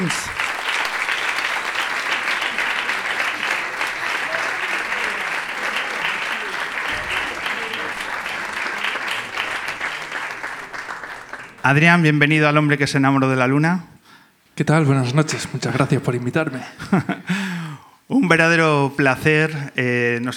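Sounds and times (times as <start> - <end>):
speech: 0.0 - 0.4, 11.6 - 13.9, 14.6 - 17.3, 18.1 - 20.3
laughter: 0.0 - 11.6, 15.3 - 17.4
audience applause: 0.0 - 11.9.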